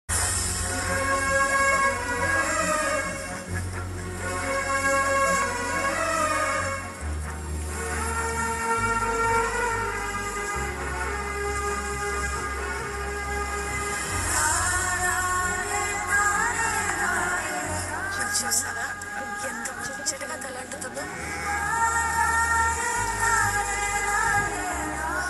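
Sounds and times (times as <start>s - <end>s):
romantic background music: 0.1s - 25.2s.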